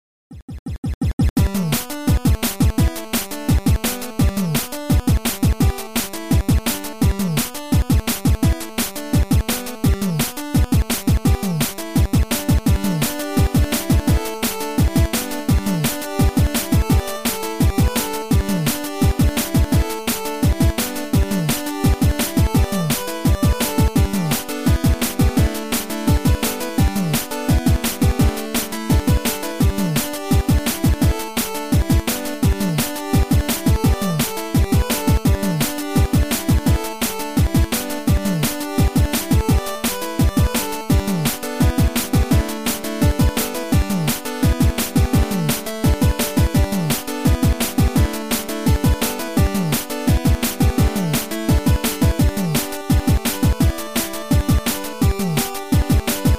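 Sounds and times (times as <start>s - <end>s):
square wave dance music: 0.8s - 56.3s.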